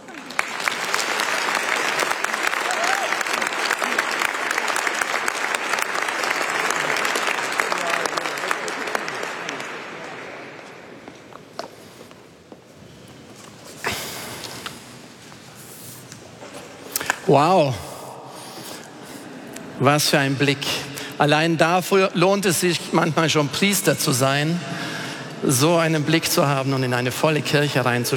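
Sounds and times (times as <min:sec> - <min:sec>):
audience applause: 0:00.0 - 0:10.9
speech: 0:17.3 - 0:17.8, 0:19.8 - 0:24.8, 0:25.4 - 0:28.1.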